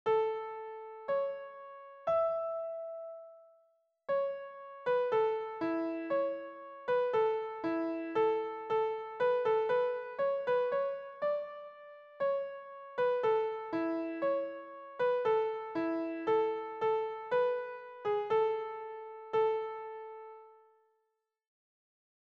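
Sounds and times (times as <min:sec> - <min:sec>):
music in A major: 0:00.1 - 0:20.8.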